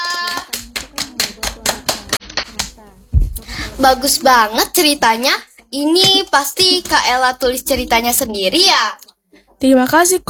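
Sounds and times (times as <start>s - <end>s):
applause: 0.0s - 2.7s
speech: 3.8s - 9.0s, 9.6s - 10.2s.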